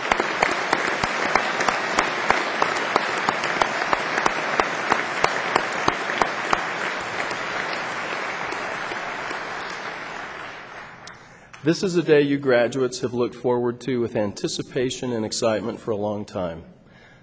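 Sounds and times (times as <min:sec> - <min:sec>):
audience applause for graduates: 0:00.0 - 0:11.1
speech: 0:11.6 - 0:16.8.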